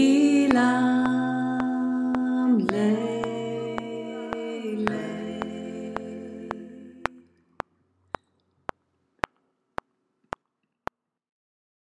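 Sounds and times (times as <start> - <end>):
tenor singing: 0.0 - 7.2.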